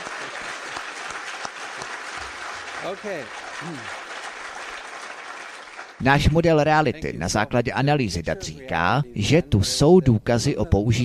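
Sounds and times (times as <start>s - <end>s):
applause: 0.0s - 6.1s
speech: 2.8s - 4.0s, 6.0s - 11.0s.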